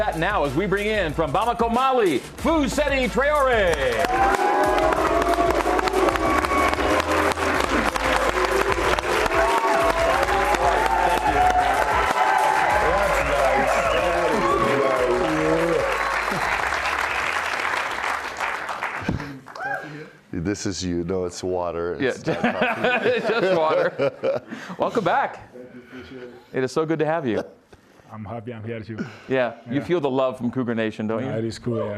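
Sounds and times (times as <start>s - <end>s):
speech: 0.0s - 5.4s, 20.6s - 31.9s
large arena crowd cheering and applauding: 3.4s - 19.9s
laughter: 22.2s - 24.9s.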